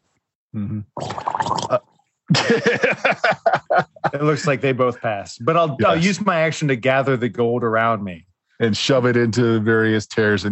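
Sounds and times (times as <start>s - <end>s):
speech: 0.5s - 10.5s
tabletop role-playing game player imitating a bleeding character's gargle: 0.6s - 1.8s
laughter: 2.3s - 6.1s.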